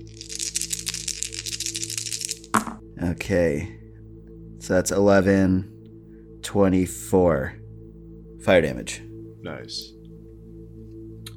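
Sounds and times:
lot of dice rolling: 0:00.1 - 0:02.8
speech: 0:03.0 - 0:03.8, 0:04.7 - 0:05.8, 0:06.5 - 0:07.6, 0:08.4 - 0:10.0.

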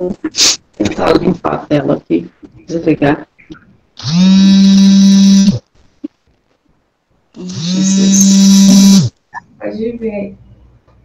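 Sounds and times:
speech: 0:00.0 - 0:03.3, 0:04.0 - 0:04.8
phone vibrating: 0:04.0 - 0:05.6, 0:07.4 - 0:09.4.

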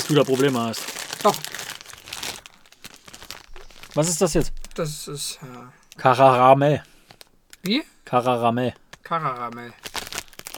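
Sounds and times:
crinkly plastic wafer wrapper being torn and crumpled: 0:00.0 - 0:04.8, 0:07.0 - 0:07.8, 0:08.8 - 0:10.5
speech: 0:00.1 - 0:01.7, 0:04.0 - 0:06.9, 0:07.6 - 0:09.9.

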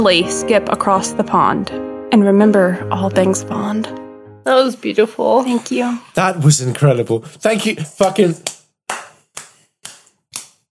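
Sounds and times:
speech: 0:00.0 - 0:08.6
people clapping: 0:07.9 - 0:10.6.

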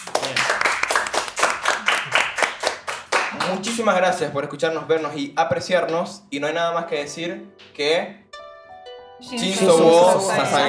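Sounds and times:
hand clapping: 0:00.0 - 0:04.0
speech: 0:03.5 - 0:08.2, 0:09.2 - 0:10.6.

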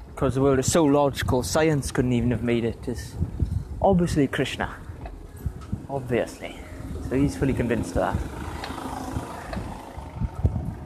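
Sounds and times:
speech: 0:00.2 - 0:04.8, 0:05.9 - 0:08.4
car passing on a road: 0:04.7 - 0:10.8.

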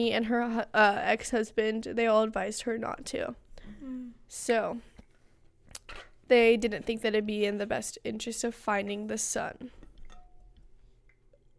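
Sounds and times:
speech: 0:00.0 - 0:04.9, 0:05.9 - 0:09.8
low hum: 0:00.0 - 0:11.5
glass clinking: 0:09.8 - 0:11.0.

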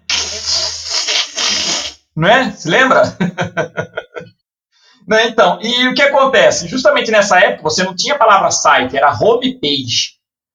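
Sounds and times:
dial-up internet modem connection screech: 0:00.0 - 0:02.1
speech: 0:02.2 - 0:04.3, 0:05.0 - 0:10.2
laughter: 0:02.9 - 0:04.4.

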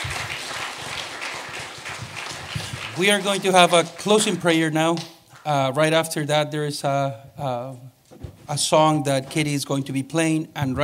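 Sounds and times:
audience applause: 0:00.0 - 0:05.1
speech: 0:03.0 - 0:10.8.

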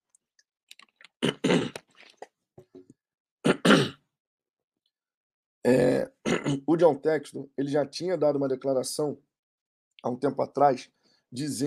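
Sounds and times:
person sipping water: 0:00.7 - 0:02.3
throat clearing: 0:01.2 - 0:01.8, 0:03.5 - 0:04.0, 0:05.7 - 0:06.7
speech: 0:06.8 - 0:09.3, 0:10.0 - 0:11.6.

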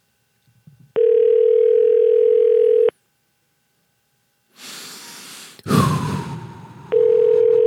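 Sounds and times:
phone ringback tone on an outgoing call: 0:01.0 - 0:02.9, 0:06.9 - 0:07.6
breathy burst: 0:04.6 - 0:06.9.

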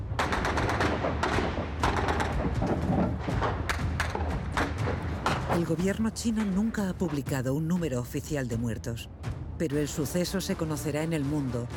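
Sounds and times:
gunfire as soldiers fire on protesters in Tiananmen Square: 0:00.1 - 0:05.5
speech: 0:05.6 - 0:11.7.

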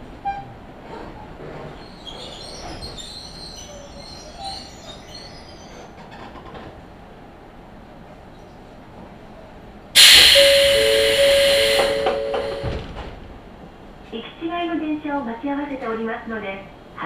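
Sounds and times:
low steady rumble inside a train on the Izuhakone Railway and Tokaido Line: 0:00.0 - 0:17.0
loud chime with a sustained tone: 0:10.0 - 0:12.9.

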